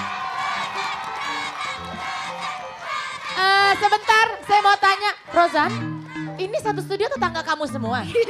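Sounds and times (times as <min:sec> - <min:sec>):
studio audience cheering for a contestant on a TV show: 0:00.0 - 0:04.8
speech: 0:04.7 - 0:08.2.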